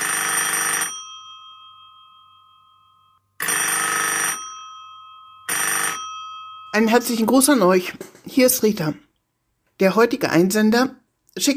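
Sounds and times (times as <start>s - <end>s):
telephone ringing in loud buzzy bursts: 0.0s - 8.0s
speech: 6.8s - 9.0s, 9.8s - 11.5s.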